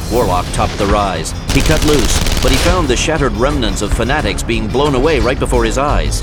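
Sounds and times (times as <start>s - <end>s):
speech: 0.2s - 6.2s
machine gun fire: 1.5s - 3.0s.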